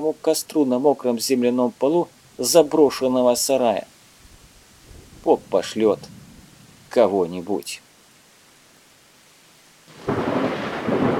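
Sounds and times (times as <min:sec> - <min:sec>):
speech: 0:00.0 - 0:03.9, 0:05.2 - 0:06.2, 0:06.9 - 0:07.8
loud steady hiss of falling rain: 0:00.0 - 0:11.1
deep rolling rumble of thunder: 0:04.2 - 0:07.3, 0:09.9 - 0:11.1.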